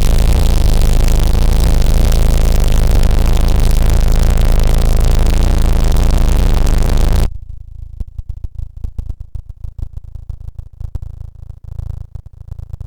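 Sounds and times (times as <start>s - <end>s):
noise: 0.0s - 7.3s.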